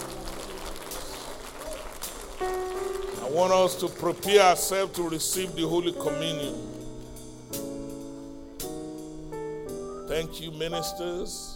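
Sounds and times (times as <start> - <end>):
audience clapping: 0.0 - 5.3
speech: 3.3 - 6.8, 10.2 - 11.5.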